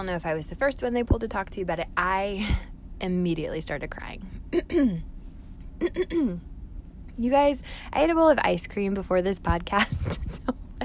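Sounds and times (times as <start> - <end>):
speech: 0.0 - 5.1, 5.8 - 6.5, 7.2 - 10.6
throat clearing: 4.6 - 5.1, 5.8 - 6.4.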